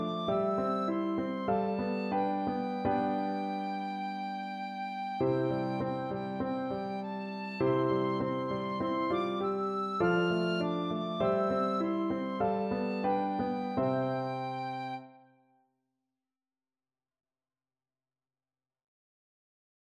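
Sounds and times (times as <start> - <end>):
tin whistle: 0.0 - 15.1.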